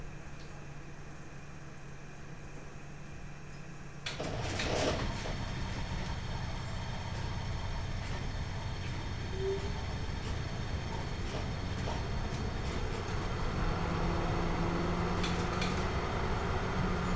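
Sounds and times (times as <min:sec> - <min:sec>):
tram journey in Basle, Switzerland: 0:04.1 - 0:17.1.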